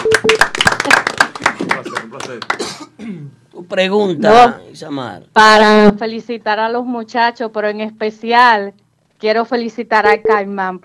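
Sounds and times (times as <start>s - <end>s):
applause: 0.0s - 2.7s
speech: 3.7s - 10.8s.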